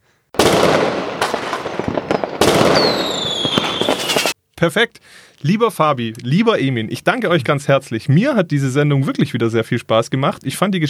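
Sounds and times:
fireworks sound effect: 0.4s - 4.4s
speech: 4.6s - 10.8s.

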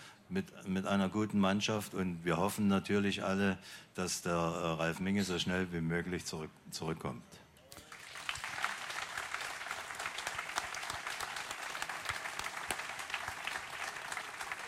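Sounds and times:
speech: 0.3s - 7.4s
audience applause: 7.8s - 14.6s.

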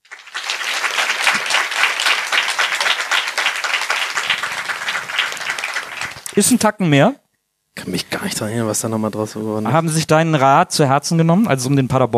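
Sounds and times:
audience applause: 0.0s - 6.7s
speech: 6.4s - 7.2s, 7.9s - 12.1s.

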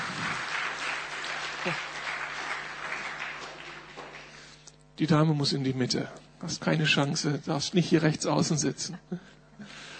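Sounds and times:
audience applause: 0.0s - 4.6s
speech: 1.6s - 1.9s, 5.0s - 9.9s.

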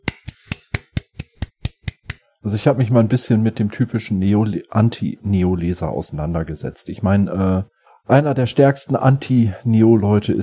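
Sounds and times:
single pair of hands clapping: 0.0s - 2.2s
speech: 2.4s - 10.4s.

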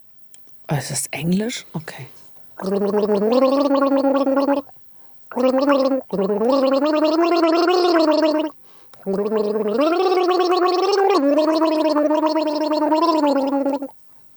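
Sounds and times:
speech: 0.7s - 13.5s
person gargling a song melody: 2.6s - 4.7s, 5.3s - 13.9s.

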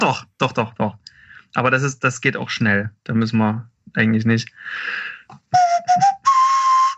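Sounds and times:
speech: 0.1s - 5.4s
breathy nose flute playing a movie theme melody: 5.5s - 6.9s.

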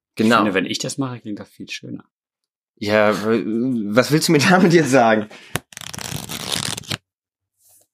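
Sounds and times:
speech: 0.2s - 2.2s, 2.8s - 5.6s
book pages being riffled: 5.6s - 7.0s.

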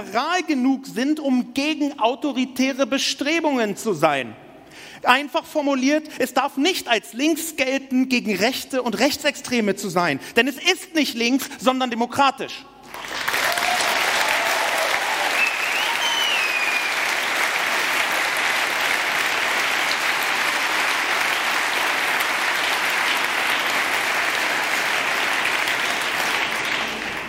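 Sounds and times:
speech: 0.0s - 13.1s
audience clapping: 12.8s - 27.2s.

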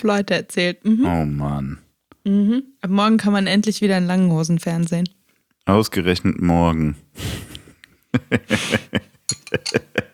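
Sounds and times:
speech: 0.0s - 7.5s, 8.1s - 10.1s
laughter: 7.2s - 10.1s
clinking a drinking glass: 9.3s - 10.0s.

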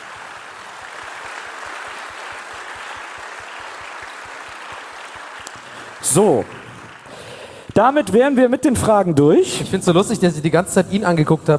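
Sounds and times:
audience applause: 0.0s - 7.7s
speech: 6.0s - 6.6s, 7.8s - 11.5s.

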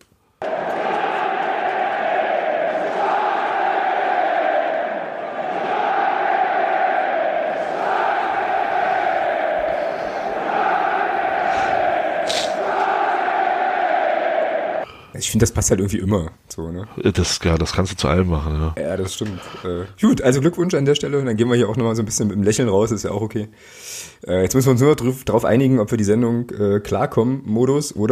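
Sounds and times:
crowd cheering sound effect: 0.4s - 14.8s
speech: 15.2s - 28.0s.

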